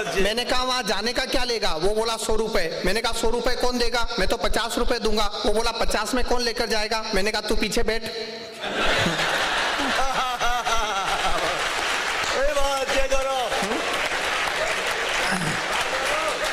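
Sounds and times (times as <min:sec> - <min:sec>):
speech: 0:00.0 - 0:09.2
audience laughing: 0:08.6 - 0:12.1, 0:13.5 - 0:16.5
audience clapping: 0:09.1 - 0:16.5.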